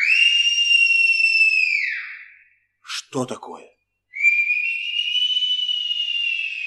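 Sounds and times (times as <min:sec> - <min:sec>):
robbers' whistling signals imitating birdsong: 0:00.0 - 0:02.6, 0:04.1 - 0:06.6
speech: 0:03.1 - 0:03.8.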